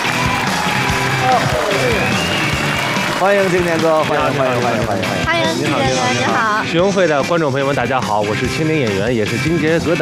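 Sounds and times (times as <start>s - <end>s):
audience applause welcoming a guest: 0.0s - 6.2s
crowd cheering: 0.0s - 6.6s
speech: 3.2s - 9.9s.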